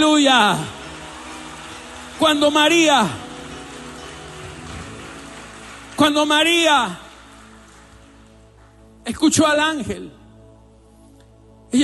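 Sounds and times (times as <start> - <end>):
speech: 0.0 - 0.8, 2.2 - 3.2, 6.0 - 7.0, 9.0 - 10.2
audience applauding: 0.0 - 8.9.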